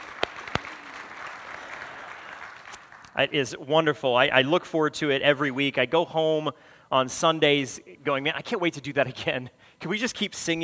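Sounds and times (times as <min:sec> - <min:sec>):
audience applause: 0:00.0 - 0:03.2
speech: 0:03.2 - 0:10.6.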